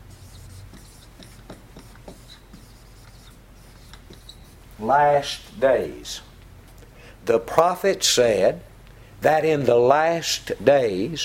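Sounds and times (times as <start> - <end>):
writing on a board during a sermon: 0.1 - 4.6
speech: 4.8 - 6.3, 7.3 - 11.2.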